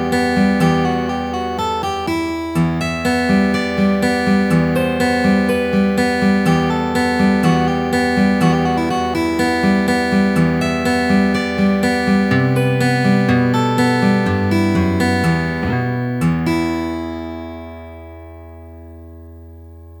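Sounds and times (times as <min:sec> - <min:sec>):
easy fingerstyle classical music: 0:00.0 - 0:18.4.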